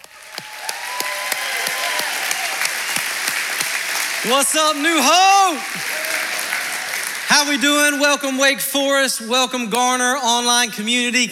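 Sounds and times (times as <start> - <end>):
church congregation applauding and cheering to welcome the pastor: 0.0 - 8.5
speech: 4.2 - 6.0, 7.3 - 11.3.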